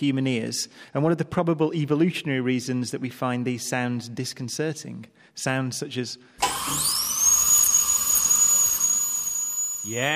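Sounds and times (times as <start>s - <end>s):
speech: 0.0s - 7.0s, 9.8s - 10.1s
dentist's drill whining: 6.4s - 10.1s.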